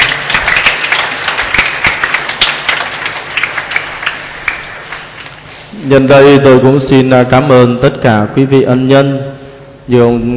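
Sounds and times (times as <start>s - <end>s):
audience applause: 0.0s - 5.3s
speech: 5.8s - 10.3s.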